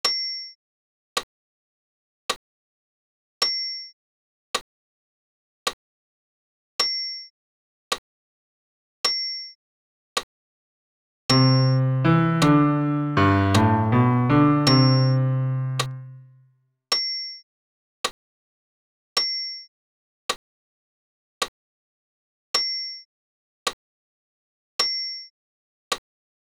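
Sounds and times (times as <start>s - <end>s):
solo piano bass part: 11.3s - 16.3s.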